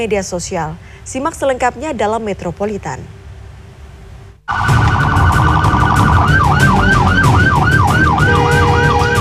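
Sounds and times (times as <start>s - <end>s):
speech: 0.0s - 3.2s
ambulance siren: 4.5s - 9.2s.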